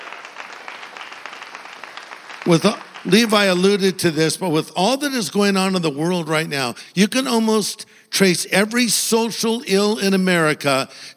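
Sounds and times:
audience applause: 0.0 - 4.1
speech: 2.5 - 11.1.

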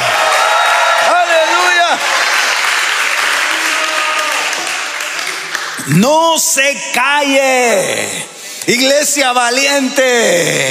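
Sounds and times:
shouts and whoops of joy: 0.0 - 2.0, 3.2 - 4.8
audience clapping: 0.0 - 6.0
speech: 5.9 - 10.6.

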